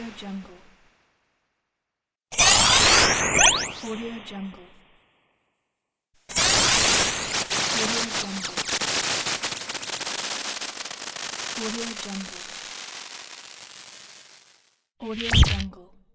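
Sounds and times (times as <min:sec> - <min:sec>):
cartoon glitch sound effects: 0:02.3 - 0:04.2, 0:06.3 - 0:13.8, 0:15.1 - 0:15.7.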